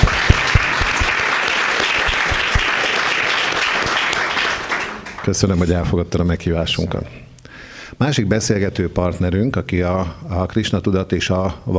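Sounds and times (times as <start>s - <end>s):
audience applause welcoming a guest: 0.0s - 5.5s
speech: 5.3s - 7.3s, 8.0s - 11.7s.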